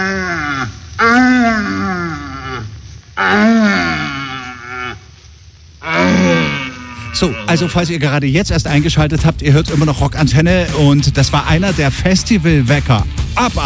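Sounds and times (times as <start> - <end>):
red deer stags calling during the rut: 0.0 - 9.0
speech: 7.2 - 13.6.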